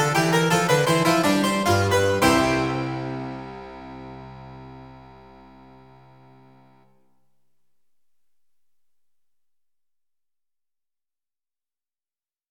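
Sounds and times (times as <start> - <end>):
harpsichord: 0.0 - 6.8.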